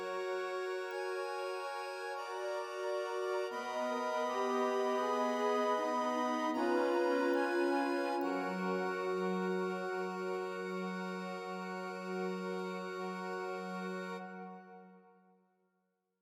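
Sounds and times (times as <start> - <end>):
harmoniums: 0.0 - 15.1
Bearnese folk singing: 2.6 - 10.2.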